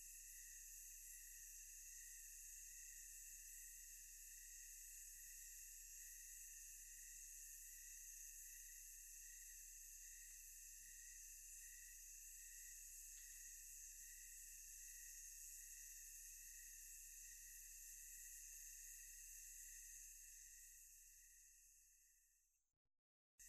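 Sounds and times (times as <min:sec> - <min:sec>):
thick tonal insect chorus: 0:00.0 - 0:22.1.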